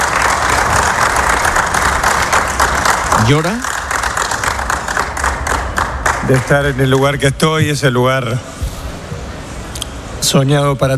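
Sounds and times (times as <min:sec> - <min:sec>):
applause in a stadium press room: 0:00.0 - 0:07.4
speech: 0:03.3 - 0:03.7, 0:06.3 - 0:08.6, 0:10.2 - 0:10.9.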